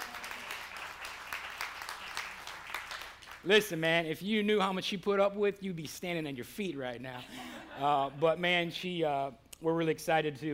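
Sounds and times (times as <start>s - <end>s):
crowd applause: 0.0s - 3.4s
speech: 3.4s - 10.5s.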